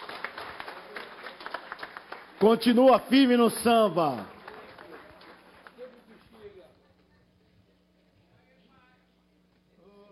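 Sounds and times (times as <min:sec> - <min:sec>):
crowd applauding: 0:00.0 - 0:06.7
speech: 0:02.4 - 0:04.4.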